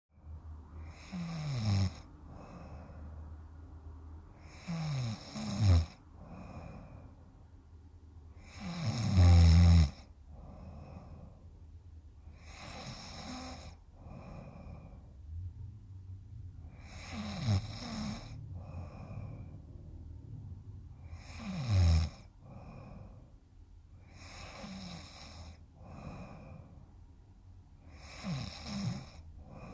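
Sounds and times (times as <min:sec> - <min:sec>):
person snoring: 0:00.8 - 0:03.0, 0:04.4 - 0:07.0, 0:08.4 - 0:11.4, 0:12.3 - 0:15.1, 0:16.7 - 0:19.6, 0:21.0 - 0:23.3, 0:24.0 - 0:26.8, 0:27.8 - 0:29.7.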